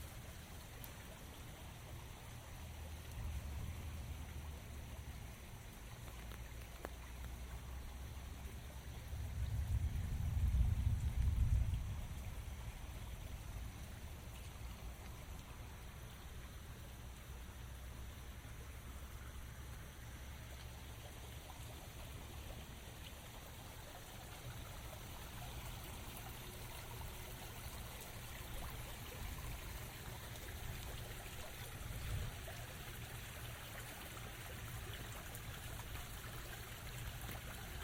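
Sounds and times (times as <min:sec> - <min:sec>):
steady rain pattering: 0:00.0 - 0:37.8
low rumble: 0:09.0 - 0:14.0.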